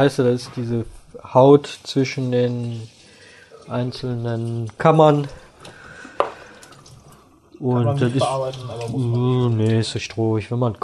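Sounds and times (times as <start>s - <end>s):
speech: 0.0s - 3.0s, 3.7s - 5.4s, 7.6s - 10.8s
rinsing bell peppers under running tap: 1.6s - 10.0s.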